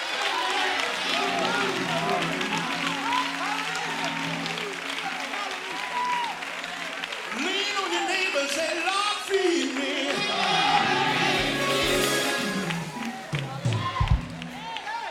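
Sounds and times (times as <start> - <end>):
audience clapping hands: 0.0 - 15.0
scattered voices and shouts: 0.0 - 15.0.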